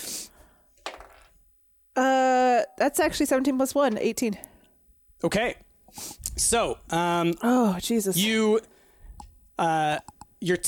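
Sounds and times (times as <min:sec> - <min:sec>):
dice clattering across a hard surface: 0:00.8 - 0:01.4
speech: 0:02.8 - 0:04.5, 0:05.2 - 0:08.7, 0:09.6 - 0:10.6.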